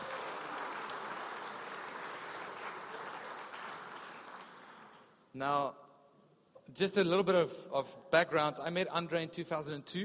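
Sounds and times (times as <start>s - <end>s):
audience applause welcoming a speaker onto the stage: 0.0s - 5.1s
speech: 5.4s - 5.8s, 6.7s - 10.0s.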